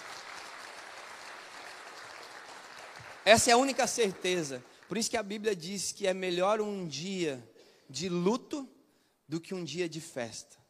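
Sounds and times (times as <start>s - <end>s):
round of applause: 0.0s - 5.5s
speech: 3.2s - 10.6s.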